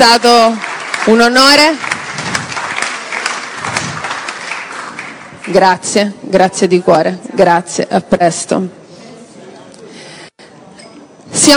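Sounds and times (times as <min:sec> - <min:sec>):
speech: 0:00.0 - 0:01.9, 0:05.5 - 0:08.8
audience applause: 0:00.1 - 0:05.5.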